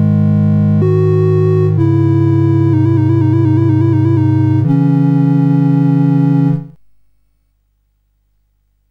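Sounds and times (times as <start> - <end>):
CSG8580R5 sound chip game music: 0.0 - 6.8.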